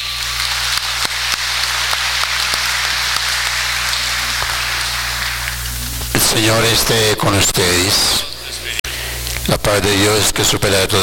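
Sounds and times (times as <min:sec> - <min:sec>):
audience applause: 0:00.0 - 0:07.9
speech: 0:06.2 - 0:08.3, 0:09.5 - 0:11.0.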